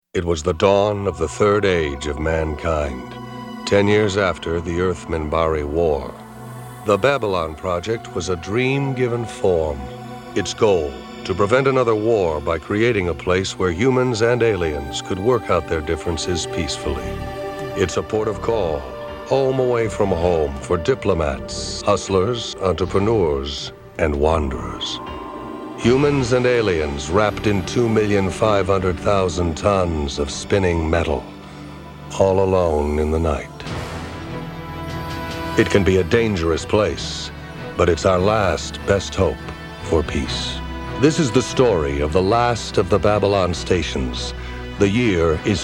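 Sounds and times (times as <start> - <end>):
person narrating: 0.2 - 31.4, 32.0 - 33.8, 35.6 - 45.6
main titles music: 1.1 - 36.8.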